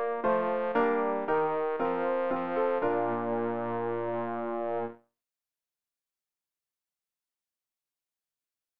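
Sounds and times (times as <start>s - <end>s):
bass practice aid: 0.0s - 5.0s.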